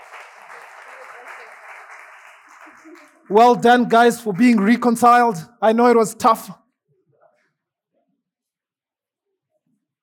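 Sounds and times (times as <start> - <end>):
audience clapping: 0.0 - 6.5
speech: 2.8 - 6.6.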